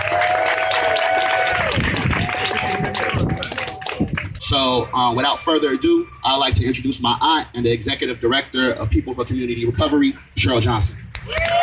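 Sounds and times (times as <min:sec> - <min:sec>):
audience applause: 0:00.0 - 0:05.0, 0:11.1 - 0:11.6
people calling out and cheering: 0:00.0 - 0:07.0, 0:11.1 - 0:11.6
speech: 0:04.6 - 0:11.4.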